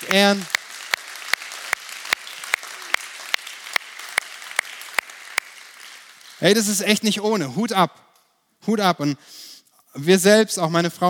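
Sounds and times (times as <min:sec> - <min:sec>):
audience applause: 0:00.0 - 0:06.8
speech: 0:00.1 - 0:00.6, 0:06.4 - 0:08.1, 0:08.7 - 0:11.0.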